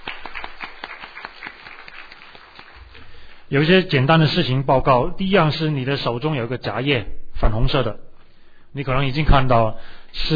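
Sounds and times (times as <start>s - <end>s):
audience clapping: 0.0s - 3.5s
speech: 3.5s - 8.0s, 8.7s - 10.3s.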